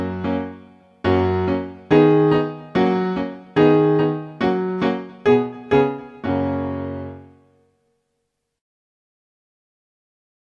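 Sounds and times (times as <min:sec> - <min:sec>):
instrumental music: 0:00.0 - 0:08.3.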